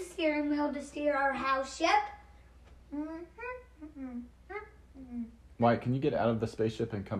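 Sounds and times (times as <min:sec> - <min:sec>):
speech: 0:00.8 - 0:02.2, 0:02.9 - 0:07.1
child humming: 0:02.9 - 0:05.4.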